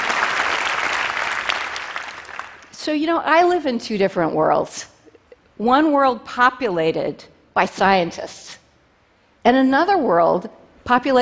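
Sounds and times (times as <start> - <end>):
audience applause: 0.0 - 2.7
speech: 2.8 - 4.9, 5.6 - 8.6, 9.4 - 11.2.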